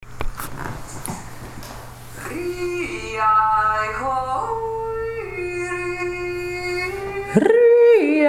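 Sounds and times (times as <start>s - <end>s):
voice: 2.2s - 8.1s.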